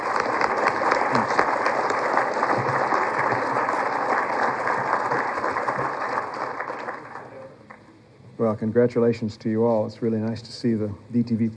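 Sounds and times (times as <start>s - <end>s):
audience applause at an engineering awards event: 0.0s - 7.8s
speech: 8.4s - 11.5s.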